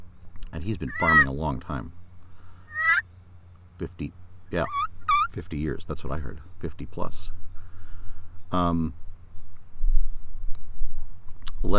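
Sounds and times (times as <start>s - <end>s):
speech: 0.6s - 2.0s, 3.8s - 7.4s, 8.5s - 9.0s
angry turkey gobbling: 0.8s - 1.3s, 2.7s - 3.0s, 4.6s - 5.4s.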